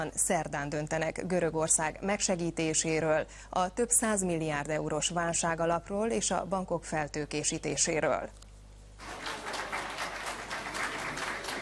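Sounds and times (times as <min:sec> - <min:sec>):
speech: 0:00.0 - 0:08.4
applause in a press room: 0:09.0 - 0:11.6.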